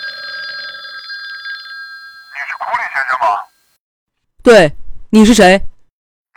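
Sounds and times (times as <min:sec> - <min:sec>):
telephone ringing: 0:00.0 - 0:03.8
speech: 0:02.7 - 0:03.5, 0:04.4 - 0:05.7.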